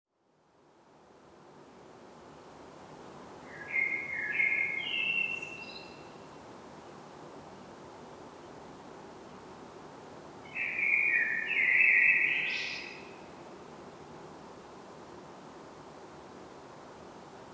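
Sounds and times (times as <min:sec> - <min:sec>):
common blackbird Turdus merula singing: 0:03.5 - 0:06.0, 0:10.5 - 0:13.0.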